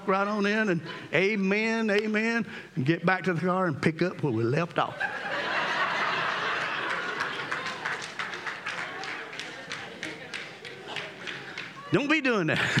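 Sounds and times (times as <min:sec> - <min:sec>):
speech: 0:00.0 - 0:05.5, 0:11.9 - 0:12.7
audience laughter: 0:04.8 - 0:11.9, 0:12.5 - 0:12.7
audience applause: 0:05.8 - 0:11.9.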